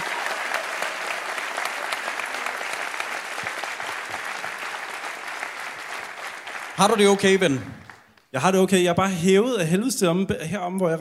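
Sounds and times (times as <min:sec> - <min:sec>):
audience applause: 0:00.0 - 0:08.2
speech: 0:06.8 - 0:11.0.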